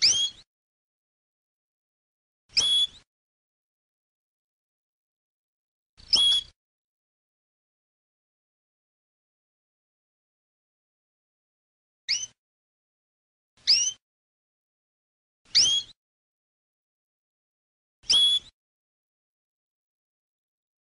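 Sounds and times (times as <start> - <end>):
canary singing: 0.0 - 0.4, 2.6 - 3.0, 6.0 - 6.6, 12.1 - 12.4, 13.6 - 14.0, 15.5 - 16.0, 18.1 - 18.5.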